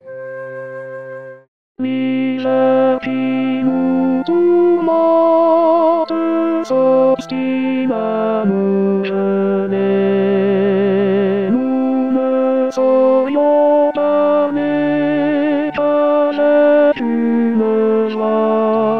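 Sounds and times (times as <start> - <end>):
tenor singing: 1.8 - 18.9.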